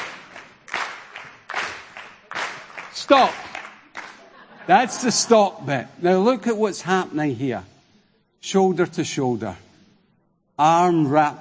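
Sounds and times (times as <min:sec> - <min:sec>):
audience clapping during a dance class: 0:00.0 - 0:04.4
speech: 0:03.0 - 0:03.5, 0:04.7 - 0:07.7, 0:08.4 - 0:09.7, 0:10.6 - 0:11.3
laughter: 0:03.9 - 0:05.7.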